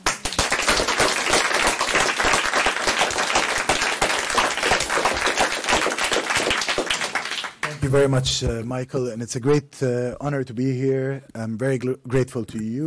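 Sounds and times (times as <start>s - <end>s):
audience applause welcoming a speaker at the LSE: 0.0s - 7.9s
speech: 7.9s - 12.8s.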